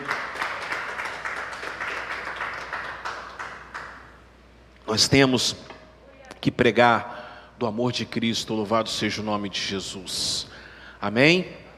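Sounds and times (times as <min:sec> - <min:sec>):
audience applauding: 0:00.0 - 0:04.1
speech: 0:04.9 - 0:05.7, 0:06.4 - 0:11.6.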